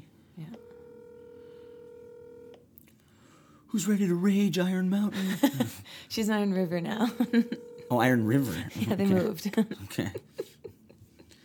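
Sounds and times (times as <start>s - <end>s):
steady electronic telephone dialing tone: 0.5s - 2.6s, 7.2s - 8.0s
speech: 3.7s - 10.5s
laughter: 5.1s - 5.8s, 8.7s - 11.3s.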